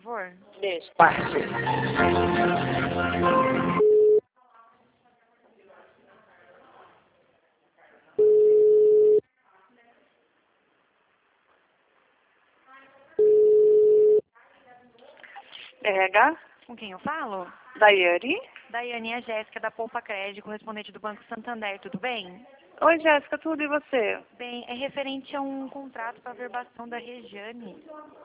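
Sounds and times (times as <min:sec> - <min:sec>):
speech: 0:00.1 - 0:03.9, 0:16.0 - 0:28.2
telephone busy tone after a dropped call: 0:03.8 - 0:04.2, 0:08.2 - 0:09.2, 0:13.2 - 0:14.2.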